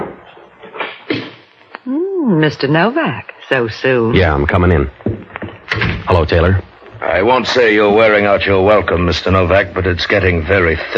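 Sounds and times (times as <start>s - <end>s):
speech: 1.9s - 5.0s, 6.1s - 10.9s
knocking on an apartment door: 5.0s - 6.1s.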